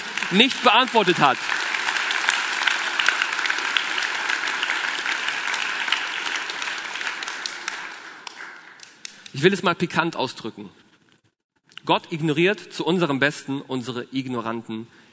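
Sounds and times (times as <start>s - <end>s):
crowd applause: 0.0s - 9.0s
speech: 0.3s - 1.6s, 9.4s - 10.8s, 11.9s - 15.0s.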